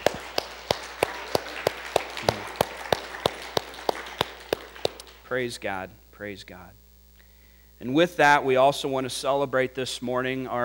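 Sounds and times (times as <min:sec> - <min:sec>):
audience applause: 0:00.0 - 0:05.3
speech: 0:05.3 - 0:06.8, 0:07.8 - 0:10.6.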